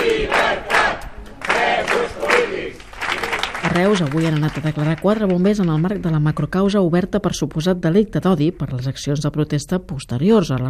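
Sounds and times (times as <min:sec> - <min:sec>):
protest crowd gathered outside the Audiència Provincial de Tarragona: 0:00.0 - 0:03.6
speech: 0:03.8 - 0:10.6.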